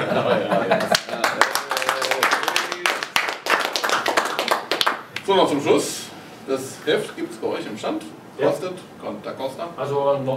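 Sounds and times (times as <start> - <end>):
laughter: 0.0 - 2.0
applause: 0.8 - 5.0
speech: 5.3 - 10.3.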